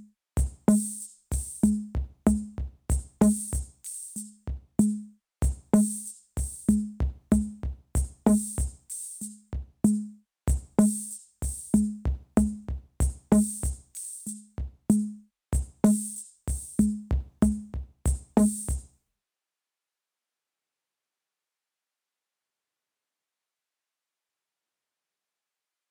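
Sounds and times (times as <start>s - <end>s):
airy drum loop: 0.4s - 3.7s, 5.4s - 9.2s, 10.5s - 14.2s, 15.6s - 18.8s.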